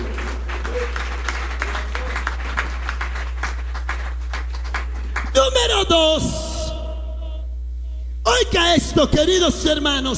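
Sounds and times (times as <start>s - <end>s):
crowd applause: 0.0s - 5.4s
low steady hum: 0.0s - 10.1s
speech: 5.4s - 6.4s, 8.4s - 10.1s.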